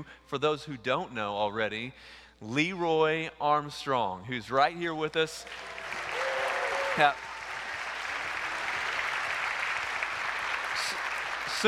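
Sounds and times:
speech: 0.0s - 5.8s, 7.0s - 7.2s
crowd applauding: 5.4s - 11.6s.

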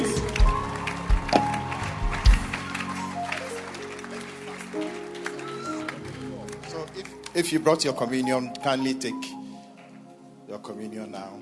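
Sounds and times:
audience clapping hands: 0.0s - 8.4s
speech: 7.4s - 9.4s, 10.7s - 11.3s.

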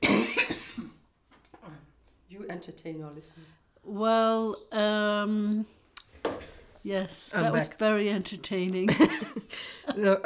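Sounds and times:
person coughing to clear something in throat: 0.0s - 1.0s
speech: 2.5s - 5.8s, 6.8s - 10.2s.

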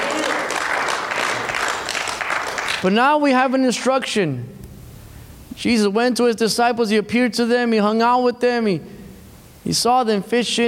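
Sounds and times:
church congregation clapping: 0.0s - 4.2s
speech: 2.8s - 4.6s, 5.6s - 8.9s, 9.6s - 10.6s.

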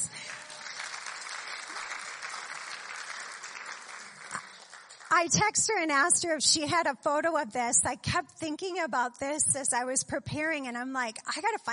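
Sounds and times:
audience applause at a slide presentation honoring a woman: 0.0s - 5.1s
speech: 5.2s - 11.7s.

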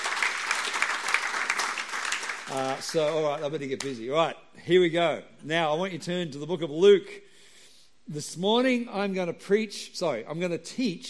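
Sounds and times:
church congregation clapping during a sermon: 0.0s - 4.0s
speech: 2.5s - 7.3s, 8.1s - 11.0s.

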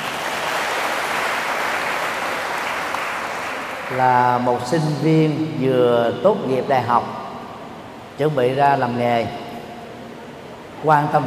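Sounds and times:
round of applause: 0.0s - 4.0s
speech: 3.9s - 7.2s, 8.2s - 9.4s, 10.8s - 11.2s.

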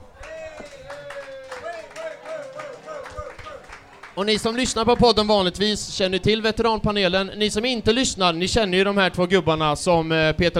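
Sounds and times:
audience applause: 0.2s - 5.3s
speech: 4.2s - 10.5s.

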